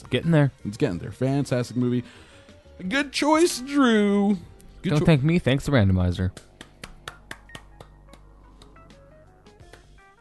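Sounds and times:
speech: 0.1s - 6.5s
clapping: 6.3s - 8.9s, 9.6s - 10.0s.

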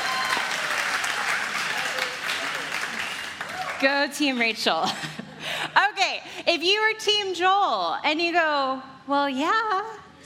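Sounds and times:
crowd clapping: 0.0s - 4.5s
speech: 3.8s - 10.0s.

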